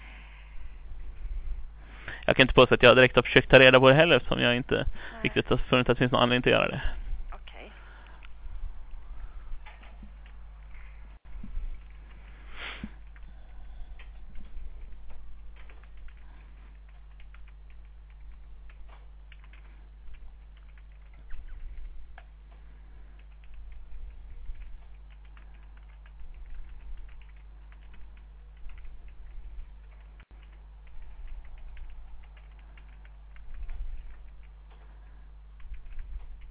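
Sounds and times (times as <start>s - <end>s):
speech: 2.3s - 7.0s
typing notes on a computer keyboard: 11.7s - 36.4s.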